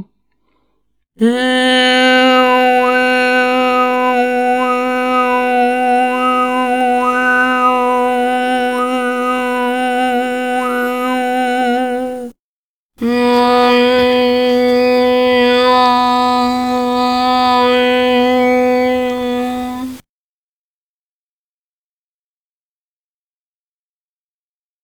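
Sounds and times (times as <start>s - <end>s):
overtone singing with closed N: 1.2s - 12.3s, 13.0s - 20.0s.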